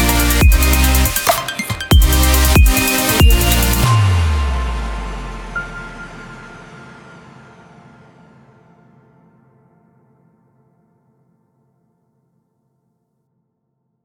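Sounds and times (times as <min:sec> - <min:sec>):
future bass music: 0:00.0 - 0:05.3.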